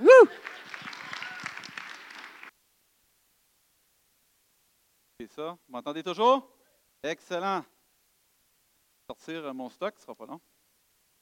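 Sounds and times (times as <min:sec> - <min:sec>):
audience applause: 0:00.0 - 0:02.5
speech: 0:05.3 - 0:07.7, 0:09.1 - 0:10.5.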